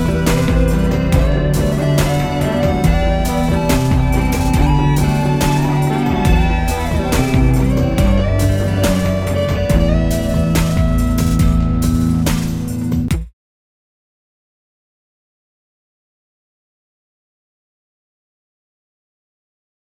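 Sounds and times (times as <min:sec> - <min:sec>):
guitar: 0:00.0 - 0:13.2.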